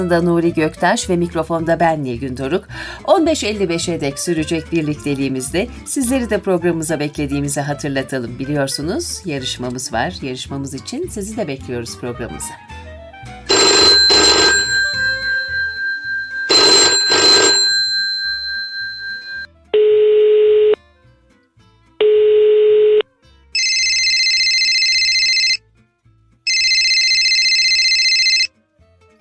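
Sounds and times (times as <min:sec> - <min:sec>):
speech: 0:00.0 - 0:12.8
longer, higher electronic telephone trills: 0:13.5 - 0:20.8, 0:23.6 - 0:25.6, 0:26.5 - 0:28.5
telephone bell ringing: 0:13.5 - 0:20.8, 0:22.0 - 0:23.0, 0:23.6 - 0:25.6, 0:26.5 - 0:28.5.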